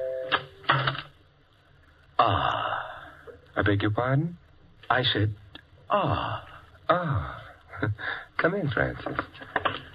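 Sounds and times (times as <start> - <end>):
doorbell chiming a melody: 0.0 - 0.6
speech: 3.6 - 9.6.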